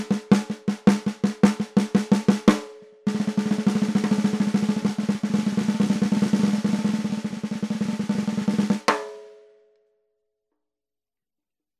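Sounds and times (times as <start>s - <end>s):
14x5 snare drum: 0.0s - 9.2s.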